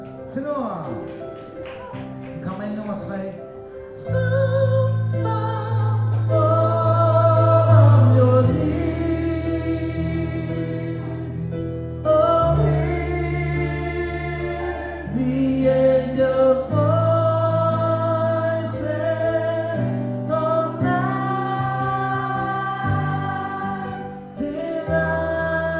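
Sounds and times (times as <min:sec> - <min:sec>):
tenor singing: 0:02.4 - 0:25.7
choir singing: 0:05.3 - 0:11.4, 0:12.1 - 0:25.7.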